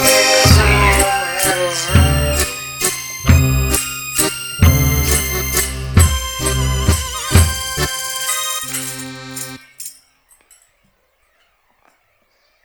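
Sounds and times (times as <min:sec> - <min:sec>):
Russian waltz: 0:00.0 - 0:09.9.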